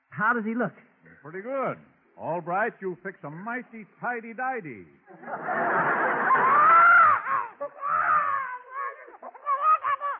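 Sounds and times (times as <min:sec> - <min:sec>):
speech: 0:00.2 - 0:06.2
laughter: 0:05.1 - 0:10.1
baby crying: 0:06.3 - 0:10.1.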